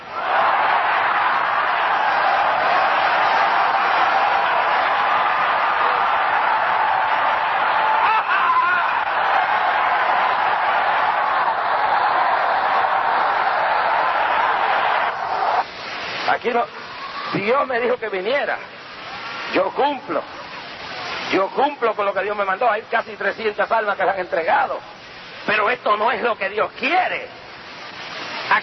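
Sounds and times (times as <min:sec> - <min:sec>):
audience shouting praise to God: 0:00.0 - 0:15.7
speech: 0:16.4 - 0:16.8, 0:17.5 - 0:18.8, 0:19.5 - 0:20.4, 0:21.3 - 0:27.4.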